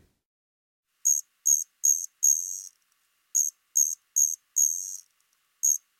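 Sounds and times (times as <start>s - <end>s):
Striped ground cricket Allonemobius fasciatus high-pitched buzzing trill: 1.0s - 2.8s, 3.3s - 5.9s.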